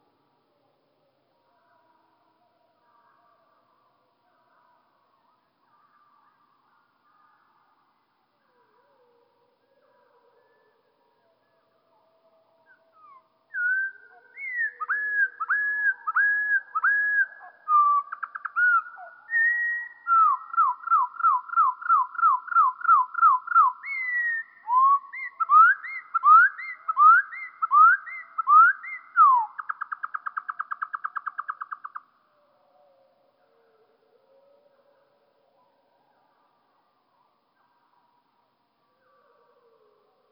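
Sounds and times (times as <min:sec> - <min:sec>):
Eurasian wren song in slow motion: 0:10.3 - 0:40.3.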